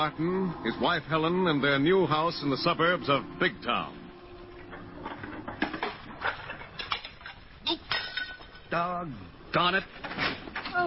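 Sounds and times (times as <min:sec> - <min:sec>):
speech: 0:00.0 - 0:04.0, 0:08.7 - 0:10.8
dishes clinking while being washed: 0:05.1 - 0:08.7.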